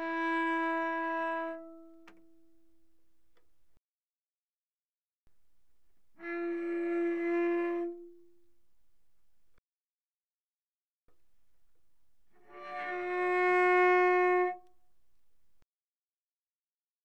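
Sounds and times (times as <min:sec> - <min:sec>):
cello arco pianissimo on the G string: 0:00.0 - 0:02.8, 0:06.0 - 0:08.7, 0:12.2 - 0:14.8.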